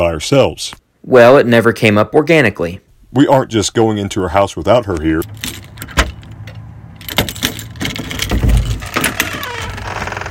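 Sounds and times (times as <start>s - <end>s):
speech: 0.0s - 5.6s
keys jingling and scraping in a lock: 5.2s - 9.6s
door rattling and creaking open: 5.2s - 10.2s.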